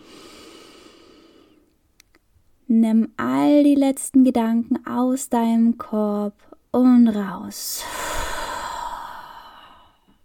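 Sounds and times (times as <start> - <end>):
soft inhale during guided meditation: 0.0 - 1.7, 7.8 - 10.2
speech: 2.7 - 8.0.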